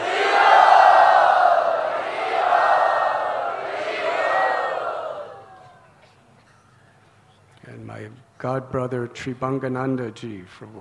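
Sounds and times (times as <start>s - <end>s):
large crowd chanting at a Krishna devotional kirtan gathering: 0.0s - 5.9s
speech: 8.4s - 10.7s.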